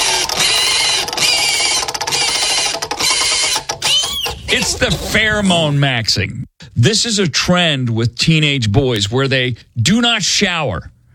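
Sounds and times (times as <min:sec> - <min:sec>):
spinning prize wheel pointer clacking against pegs: 0:00.0 - 0:05.2
speech: 0:04.5 - 0:11.0.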